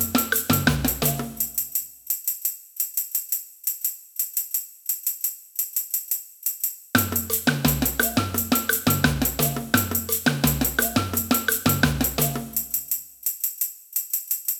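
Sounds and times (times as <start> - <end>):
samba band playing: 0.0 - 1.6, 7.0 - 12.8.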